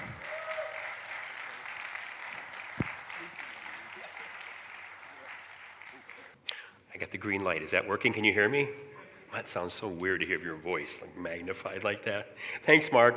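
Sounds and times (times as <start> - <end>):
audience applause: 0.0 - 6.4
speech: 7.1 - 13.1.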